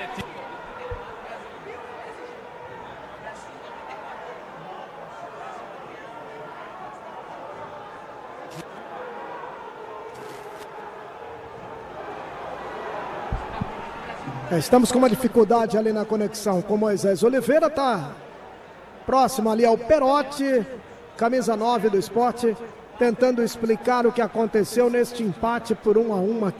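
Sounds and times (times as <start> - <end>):
large stadium crowd booing a coach: 0.0 - 26.5
scattered shouts and chatter: 0.0 - 26.5
speech: 14.5 - 18.2, 19.1 - 26.5.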